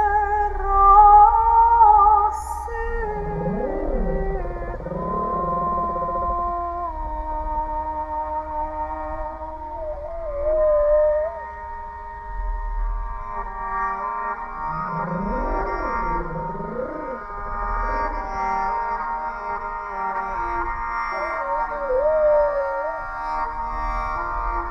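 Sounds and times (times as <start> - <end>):
humpback whale moaning calls picked up by a hydrophone off a boat: 0.0 - 12.9, 14.5 - 18.8, 21.1 - 23.8
sustained musical notes played into the water from an underwater speaker: 0.0 - 24.6.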